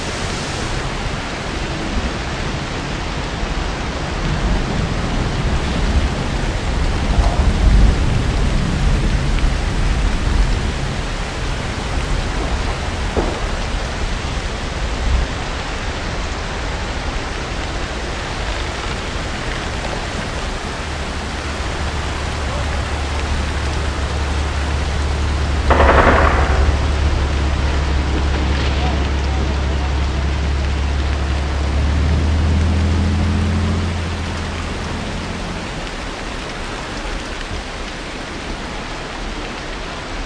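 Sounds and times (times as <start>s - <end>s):
rain on a farm: 0.0s - 40.2s.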